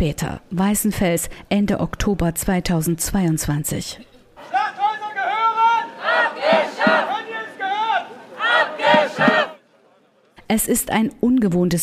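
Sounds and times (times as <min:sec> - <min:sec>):
speech: 0:00.0 - 0:04.6, 0:10.5 - 0:11.8
angry crowd shouting at a street demonstration: 0:04.4 - 0:09.6.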